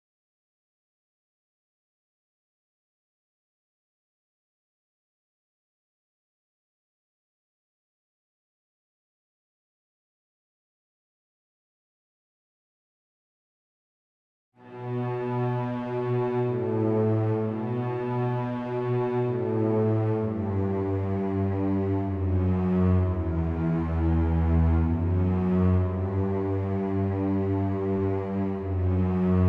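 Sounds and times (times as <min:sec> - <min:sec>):
slow strings: 0:14.6 - 0:29.4.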